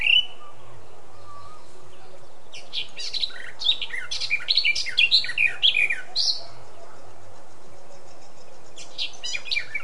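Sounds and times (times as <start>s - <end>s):
Eurasian blackcap Sylvia atricapilla singing: 0.0s - 7.1s, 7.9s - 9.8s.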